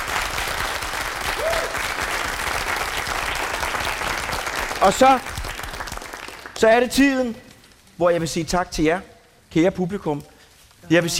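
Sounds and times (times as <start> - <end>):
audience applause: 0.0 - 6.9
speech: 4.8 - 5.3, 6.6 - 7.4, 8.0 - 10.3, 10.9 - 11.1.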